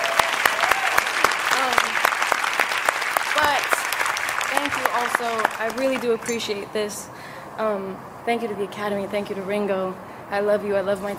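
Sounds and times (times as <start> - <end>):
crowd cheering and whooping: 0.0 - 4.9
audience applause: 0.0 - 6.4
speech: 4.8 - 11.1.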